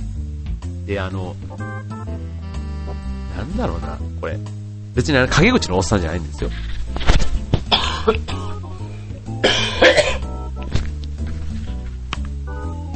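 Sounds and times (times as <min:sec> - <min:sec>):
low hum: 0:00.0 - 0:12.9
speech: 0:00.9 - 0:02.0, 0:02.9 - 0:07.1, 0:08.0 - 0:08.7, 0:09.4 - 0:10.1
person coughing: 0:07.7 - 0:08.5, 0:09.4 - 0:10.3
throat clearing: 0:07.7 - 0:08.5, 0:09.4 - 0:10.2.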